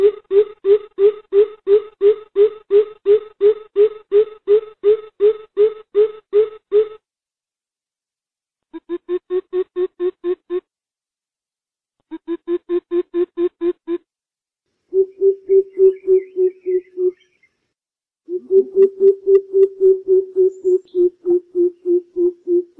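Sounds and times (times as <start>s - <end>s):
greater coucal giving low hollow hoots: 0.0s - 7.0s, 8.7s - 10.7s, 12.1s - 14.1s, 14.9s - 17.2s, 18.3s - 22.7s.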